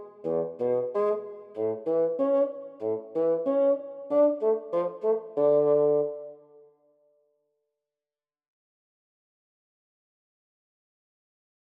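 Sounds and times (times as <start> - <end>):
bassoon arpeggio: 0.0 - 6.3.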